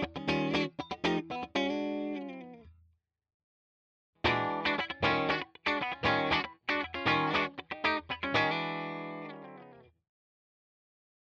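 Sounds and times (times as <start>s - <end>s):
clean funk guitar in all pickup positions: 0.0s - 2.7s, 4.2s - 9.8s.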